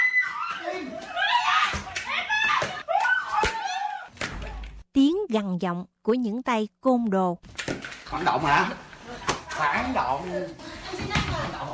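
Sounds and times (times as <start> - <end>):
women screaming while being assaulted: 0.0 - 4.1
speech: 5.3 - 8.8, 9.6 - 11.2.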